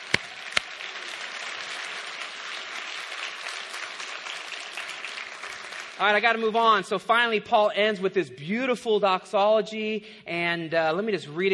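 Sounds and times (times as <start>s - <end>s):
audience applause: 0.0s - 6.1s
speech: 6.0s - 11.5s.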